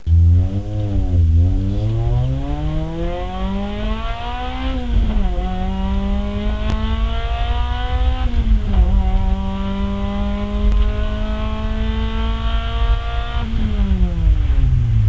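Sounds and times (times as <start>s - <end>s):
silenced exhaust at full acceleration heard from inside: 0.0s - 15.0s.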